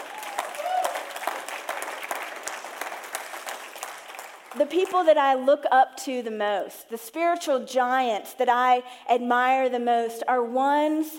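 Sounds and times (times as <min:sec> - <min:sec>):
audience clapping hands: 0:00.0 - 0:05.1
speech: 0:04.6 - 0:11.1.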